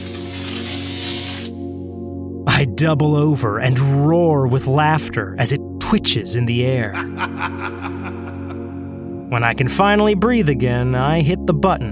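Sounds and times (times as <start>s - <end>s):
electric fence zapping and frying: 0.0s - 1.7s
speech: 2.6s - 8.2s, 9.3s - 11.9s
laughter: 6.9s - 8.9s.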